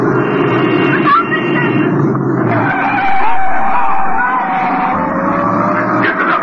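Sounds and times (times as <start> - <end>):
car engine roar: 0.0 - 6.4
skidding tyres of a swerving car screeching: 0.8 - 6.4
faint shouts from a crowd: 2.9 - 5.0.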